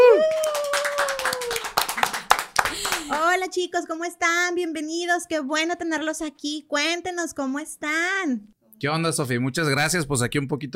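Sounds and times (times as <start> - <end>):
audience applause: 0.0 - 3.2
sustained tonal whoop from the crowd: 0.0 - 3.2
speech: 3.6 - 10.7.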